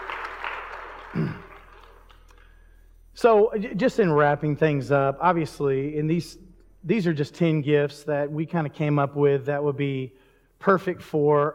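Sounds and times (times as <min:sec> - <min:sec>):
audience applause: 0:00.0 - 0:02.2
speech: 0:01.2 - 0:01.4, 0:03.2 - 0:11.5.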